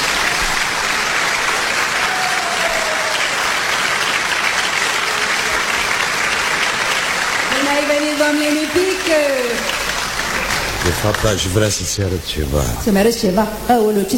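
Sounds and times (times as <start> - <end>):
sustained audience applause: 0.0 - 12.2
speech: 8.3 - 9.8, 10.8 - 14.1.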